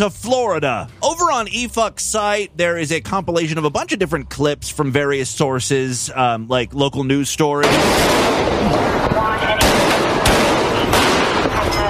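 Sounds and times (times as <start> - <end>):
speech: 0.0 - 10.1
constant harsh noise: 0.0 - 11.8
gunshots during a shooting at the Trump National Hotel: 7.6 - 11.8.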